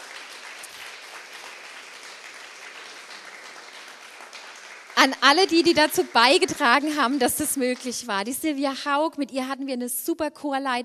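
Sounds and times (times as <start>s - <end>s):
audience applause: 0.0s - 8.0s
speech: 5.0s - 10.8s.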